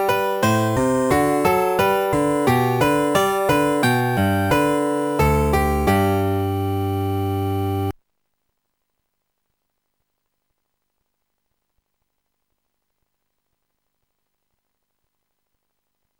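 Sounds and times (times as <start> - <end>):
bourrée dance music: 0.0 - 7.9.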